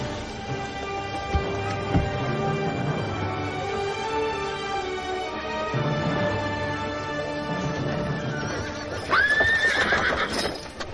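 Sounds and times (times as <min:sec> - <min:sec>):
sustained musical drone: 0:00.0 - 0:09.2
hoofbeats of horses of a marching army: 0:00.5 - 0:03.3, 0:07.2 - 0:10.9
horse neighing: 0:08.8 - 0:10.6.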